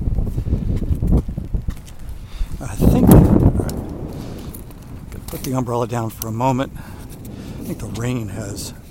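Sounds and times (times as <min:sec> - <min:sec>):
wind blowing: 0:00.0 - 0:08.8
speech: 0:05.4 - 0:07.0, 0:07.7 - 0:08.8.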